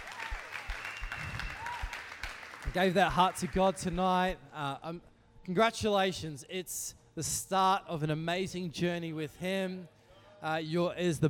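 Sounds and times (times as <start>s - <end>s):
audience clapping: 0.0s - 3.9s
speech: 2.8s - 11.2s.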